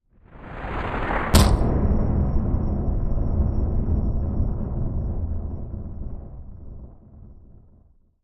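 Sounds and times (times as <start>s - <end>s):
rumble: 0.0s - 8.2s
hard impact: 1.4s - 1.8s.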